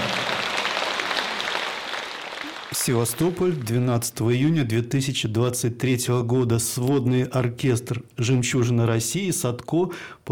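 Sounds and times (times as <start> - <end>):
concert audience applause after a combined orchestra's performance in Sevastopol: 0.0 - 3.9
speech: 2.8 - 10.3.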